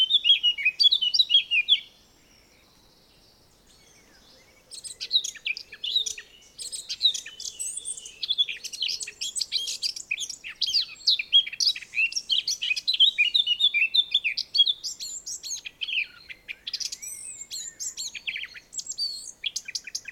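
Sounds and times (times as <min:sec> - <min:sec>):
Eurasian blackcap singing: 0:00.0 - 0:01.9, 0:03.6 - 0:20.1
hiss: 0:00.0 - 0:20.1.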